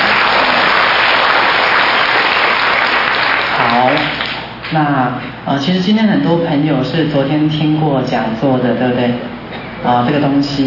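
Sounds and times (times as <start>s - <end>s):
audience clapping: 0.0s - 4.5s
speech: 4.0s - 10.6s.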